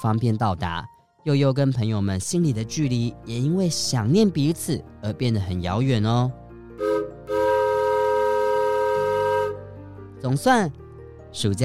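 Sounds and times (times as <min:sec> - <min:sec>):
speech: 0:00.0 - 0:07.0, 0:10.2 - 0:11.6
small mountain train whistle: 0:06.8 - 0:09.6.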